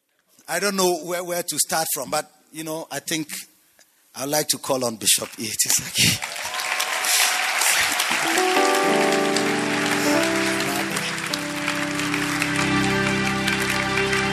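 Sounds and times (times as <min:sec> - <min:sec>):
speech: 0:00.5 - 0:03.5, 0:04.2 - 0:06.4
audience applause: 0:05.9 - 0:14.3
sustained keyboard or organ chords: 0:08.2 - 0:14.3.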